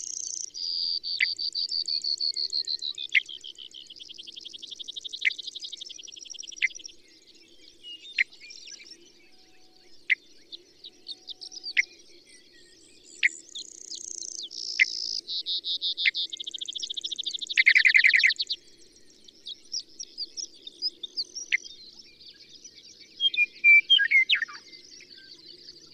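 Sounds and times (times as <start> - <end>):
bird chirping: 0.0 - 25.9.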